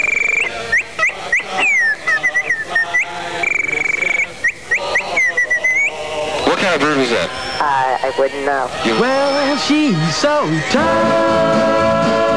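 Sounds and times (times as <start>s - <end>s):
whistled bird call imitations: 0.0s - 6.6s, 7.2s - 7.8s, 8.9s - 10.1s
speech: 8.1s - 12.2s.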